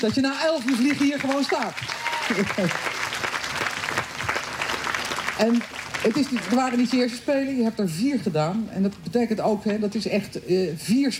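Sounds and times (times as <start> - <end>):
speech: 0.0 - 3.1, 5.4 - 11.1
audience applause: 0.0 - 7.2.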